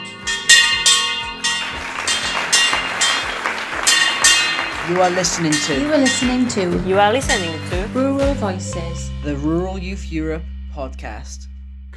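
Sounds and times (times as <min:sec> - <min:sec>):
hand bell ringing: 0:00.0 - 0:08.0
crowd clapping: 0:01.1 - 0:08.4
crowd murmuring: 0:01.8 - 0:07.8
speech: 0:04.9 - 0:11.9.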